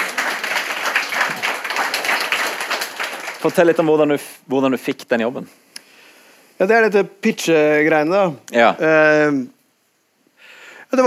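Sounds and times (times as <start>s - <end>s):
audience clapping: 0.0s - 4.0s
speech: 3.4s - 5.6s, 6.6s - 9.6s.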